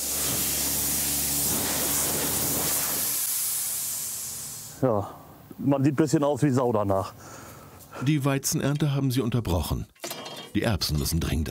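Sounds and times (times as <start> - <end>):
compressed air blowing dust off a combine harvester: 0.0 - 5.5
speech: 4.8 - 7.4, 8.0 - 11.5.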